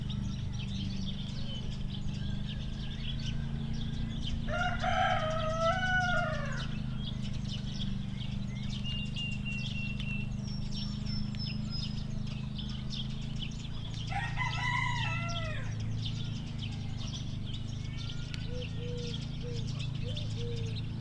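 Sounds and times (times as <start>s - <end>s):
mower-like drone: 0.0s - 20.9s
rooster crowing: 3.4s - 7.1s, 14.1s - 17.0s, 17.8s - 18.8s.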